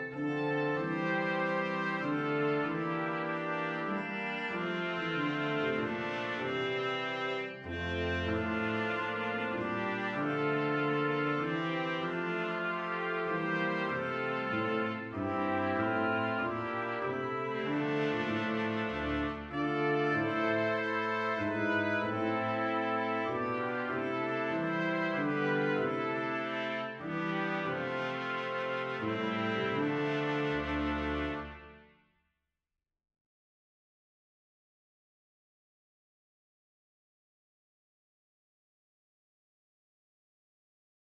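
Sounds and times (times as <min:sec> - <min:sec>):
brass quintet: 0:00.0 - 0:32.0.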